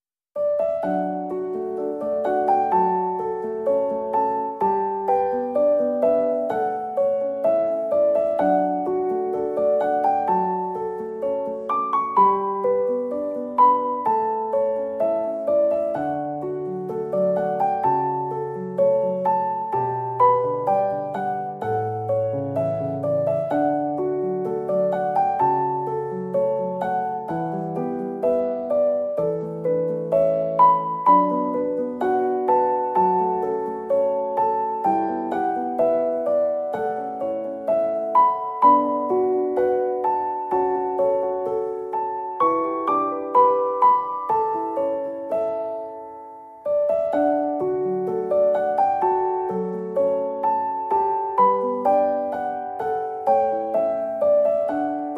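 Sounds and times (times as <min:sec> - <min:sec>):
piano: 0:00.0 - 0:55.1.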